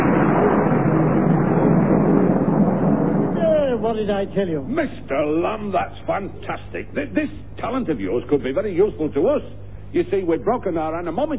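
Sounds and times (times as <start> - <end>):
rolling thunder: 0.0 - 4.3
speech: 3.9 - 11.3.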